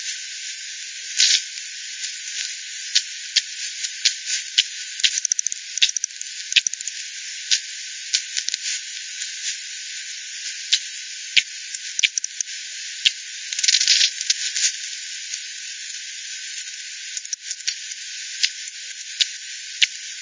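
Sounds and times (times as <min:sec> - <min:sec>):
steady hiss: 0:00.0 - 0:20.2
bat echolocation pulses: 0:04.1 - 0:07.6, 0:10.7 - 0:14.4, 0:17.1 - 0:18.6.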